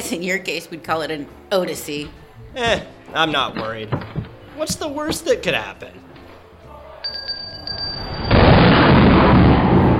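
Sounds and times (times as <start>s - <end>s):
speech: 0.1s - 6.0s
thunder boom in a snowstorm: 8.1s - 9.9s.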